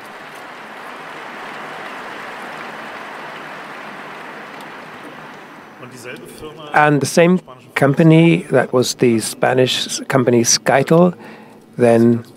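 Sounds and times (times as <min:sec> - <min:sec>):
audience applause: 0:00.0 - 0:06.2
speech: 0:05.8 - 0:12.3.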